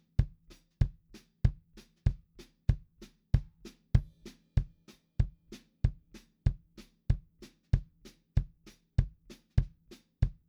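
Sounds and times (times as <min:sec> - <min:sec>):
bass kick drum: 0:00.2 - 0:10.4.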